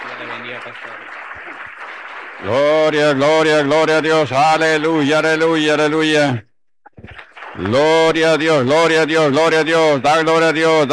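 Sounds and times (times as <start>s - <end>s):
audience applauding: 0.0s - 4.4s, 6.9s - 9.0s
speech: 0.2s - 6.5s, 7.6s - 10.9s.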